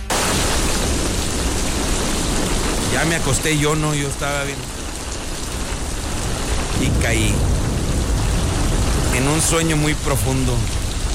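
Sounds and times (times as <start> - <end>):
recorded rain sounds for sleeping: 0.0 - 11.1
speech: 3.0 - 4.8, 6.8 - 7.6, 9.2 - 10.8.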